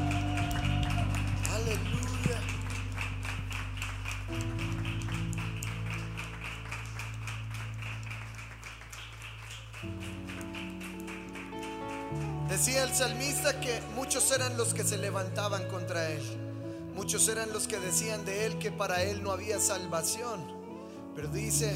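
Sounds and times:
audience clapping: 0.0s - 15.6s
sustained keyboard chords: 0.0s - 21.7s
speech: 12.6s - 16.4s, 17.0s - 20.6s, 21.2s - 21.7s.

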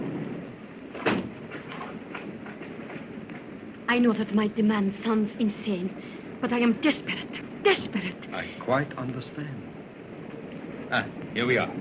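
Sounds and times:
train rumbling: 0.0s - 11.8s
train compartment door being latched shut: 0.9s - 2.3s
speech: 3.9s - 9.6s, 10.9s - 11.8s.

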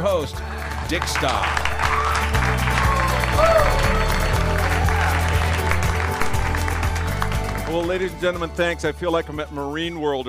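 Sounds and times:
speech: 0.0s - 1.8s, 7.7s - 10.2s
low hum of music or crowd murmur: 0.0s - 8.5s
audience applause: 0.4s - 8.0s.

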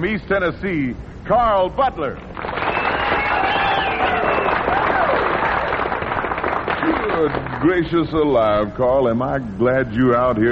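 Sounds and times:
speech: 0.0s - 2.3s, 7.2s - 10.5s
audience applauding: 2.4s - 8.1s.

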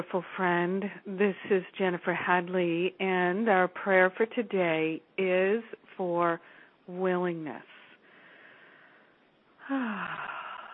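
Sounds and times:
speech: 0.0s - 7.8s, 9.7s - 10.4s
deep breath: 8.0s - 10.7s.

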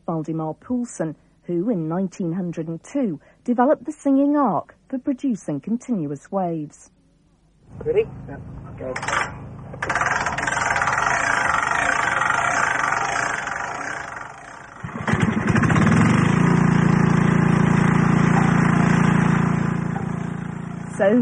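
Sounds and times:
speech: 0.1s - 7.0s, 7.7s - 10.4s, 21.0s - 21.2s
generators running at a field radio site: 8.1s - 21.2s
clunk: 8.9s - 11.0s.

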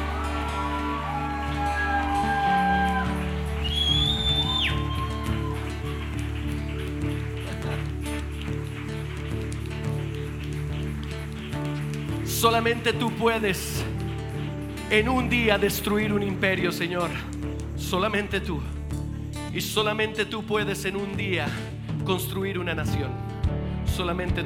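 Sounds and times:
audience applause: 0.0s - 17.6s
speech: 12.4s - 13.9s, 14.9s - 18.7s, 19.6s - 23.3s, 24.0s - 24.4s.

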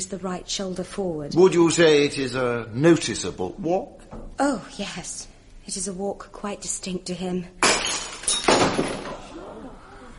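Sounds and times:
speech: 0.0s - 7.7s, 8.8s - 9.1s
quiet room noise: 0.0s - 10.1s
glass carafe knocked over during a trial: 7.6s - 9.2s.

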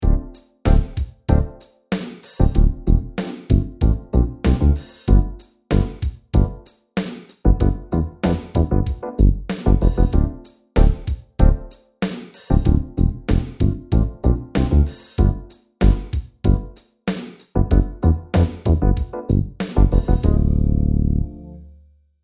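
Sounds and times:
funk disco sub bass: 0.0s - 1.5s, 2.4s - 6.6s, 7.5s - 11.6s, 12.5s - 16.7s, 17.6s - 21.2s.

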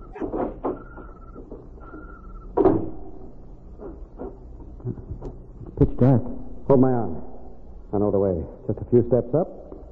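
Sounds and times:
door opening: 0.0s - 5.8s
speech: 6.0s - 7.2s, 7.9s - 9.9s.

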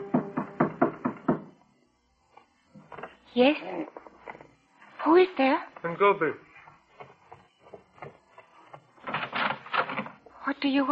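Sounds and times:
knocking on a door: 0.0s - 1.6s
speech: 3.4s - 4.0s, 5.0s - 6.5s, 10.6s - 10.9s.

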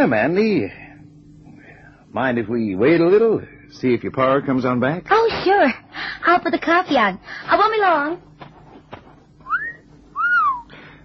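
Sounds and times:
speech: 0.0s - 0.8s, 2.1s - 8.3s
man whistling appreciatively at a young woman: 9.4s - 10.8s.

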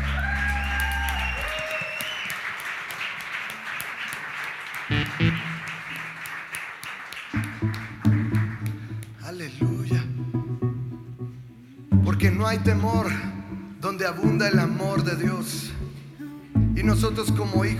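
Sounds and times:
audience applauding: 0.0s - 9.4s
sustained musical tones: 4.9s - 5.7s, 7.4s - 17.0s
speech: 12.4s - 13.3s, 14.0s - 15.8s, 16.8s - 17.7s.

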